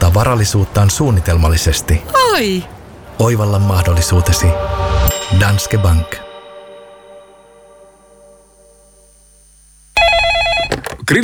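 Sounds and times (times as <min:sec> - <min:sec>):
speech: 0:00.2 - 0:06.2
telephone ringing: 0:10.0 - 0:10.8.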